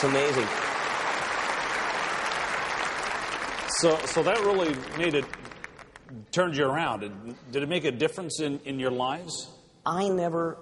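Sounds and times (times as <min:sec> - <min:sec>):
speech: 0:00.0 - 0:00.7, 0:03.8 - 0:10.6
audience applause: 0:00.0 - 0:06.1.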